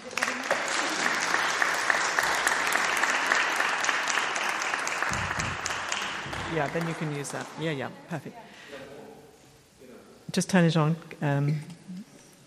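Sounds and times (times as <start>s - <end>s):
audience applause welcoming a speaker to the stage: 0.0s - 7.9s
speech: 6.5s - 8.5s, 10.3s - 11.7s.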